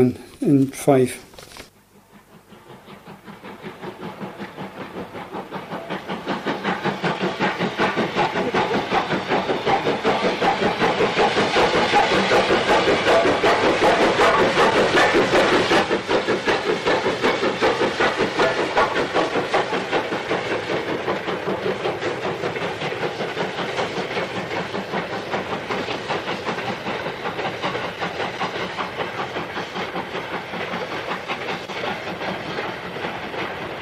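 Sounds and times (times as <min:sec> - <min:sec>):
speech: 0:00.0 - 0:01.3
steam locomotive climbing a gradient: 0:00.0 - 0:33.8.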